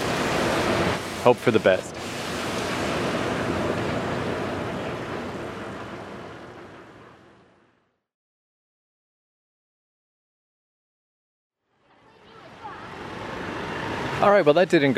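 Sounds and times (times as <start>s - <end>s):
rain at a dull roar: 0.0s - 7.9s, 11.9s - 14.9s
speech: 1.2s - 1.9s, 14.3s - 14.9s.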